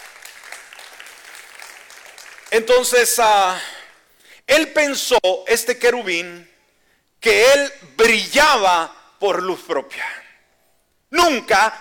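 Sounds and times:
audience applause: 0.0s - 2.8s
speech: 2.5s - 3.8s, 4.5s - 6.5s, 7.2s - 10.2s, 11.1s - 11.7s.

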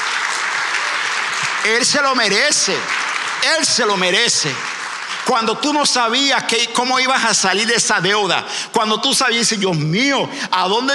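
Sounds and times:
audience applauding: 0.0s - 8.0s
speech: 1.6s - 4.7s, 5.3s - 10.9s.

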